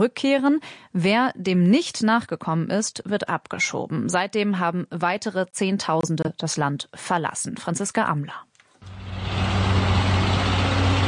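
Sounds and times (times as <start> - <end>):
speech: 0.0 - 8.5
overloaded trucks of Afghans leaving Pakistan at the Torkham border crossing: 8.8 - 11.0.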